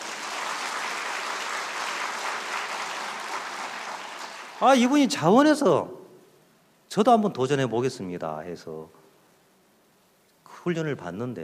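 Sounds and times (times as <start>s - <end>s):
audience applause: 0.0s - 4.9s
speech: 4.6s - 6.0s, 6.9s - 9.0s, 10.6s - 11.4s.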